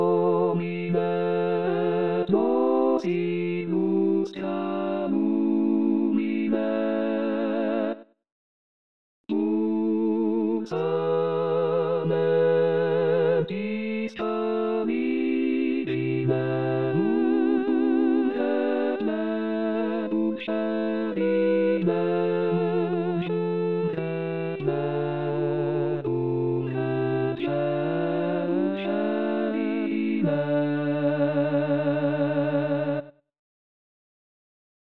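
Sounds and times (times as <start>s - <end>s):
choir singing: 0.0s - 8.0s, 9.3s - 33.1s.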